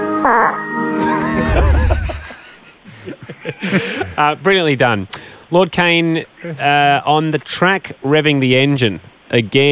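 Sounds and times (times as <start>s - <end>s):
fart in a played track: 0.1s - 0.8s
speech: 0.3s - 0.6s, 3.3s - 9.7s
laughter: 1.0s - 4.3s.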